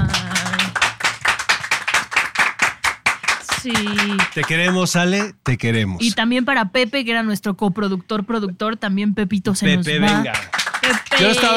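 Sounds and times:
applause of steady hand claps: 0:00.0 - 0:05.6, 0:10.0 - 0:11.5
speech: 0:03.6 - 0:11.5.

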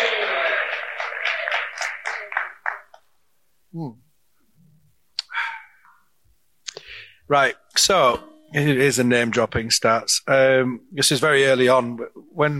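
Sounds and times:
audience applauding: 0:00.0 - 0:03.0
speech: 0:03.7 - 0:04.0, 0:07.3 - 0:12.5.

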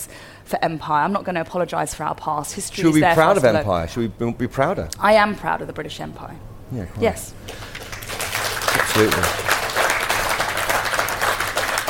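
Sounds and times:
speech: 0:00.0 - 0:07.6, 0:09.0 - 0:09.5
audience applause: 0:07.5 - 0:11.8.

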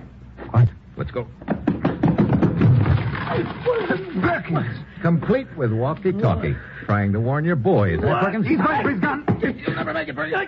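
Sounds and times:
speech: 0:00.5 - 0:01.5, 0:04.4 - 0:10.4
flimsy locked door being rushed and forced open: 0:01.5 - 0:04.0.

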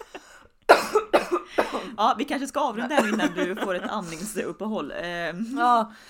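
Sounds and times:
person coughing on an inhaled cake crumb: 0:00.7 - 0:02.0
speech: 0:01.7 - 0:06.0
laughter: 0:02.9 - 0:04.3.

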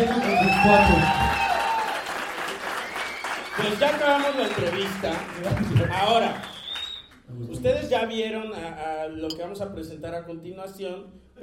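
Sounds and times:
speech: 0:00.0 - 0:01.2, 0:03.6 - 0:06.6, 0:07.3 - 0:11.4
audience applause: 0:00.0 - 0:07.0.

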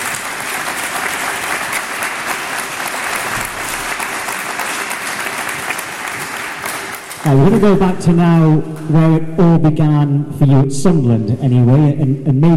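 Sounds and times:
audience applause: 0:00.0 - 0:07.6
speech: 0:07.2 - 0:12.5.

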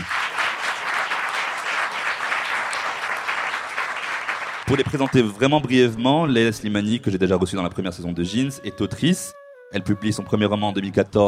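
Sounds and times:
crowd applause: 0:00.0 - 0:05.7
speech: 0:04.7 - 0:11.2.

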